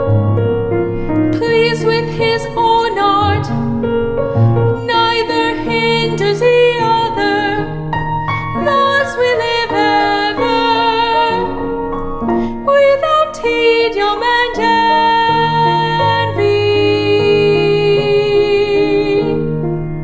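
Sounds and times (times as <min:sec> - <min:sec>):
high school soprano singing: 0:00.1 - 0:19.9.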